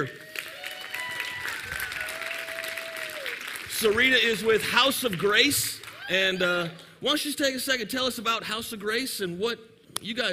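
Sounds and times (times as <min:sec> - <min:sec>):
speech: 0:00.0 - 0:00.3, 0:03.8 - 0:10.3
audience applauding to welcome a speaker at a ministry gathering: 0:00.0 - 0:06.7.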